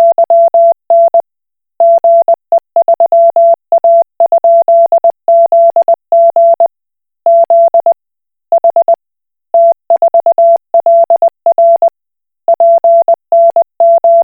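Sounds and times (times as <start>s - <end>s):
Koch Morse code beeps: 0.0s - 1.2s, 1.8s - 6.7s, 7.3s - 8.0s, 8.6s - 9.0s, 9.6s - 11.9s, 12.5s - 14.2s.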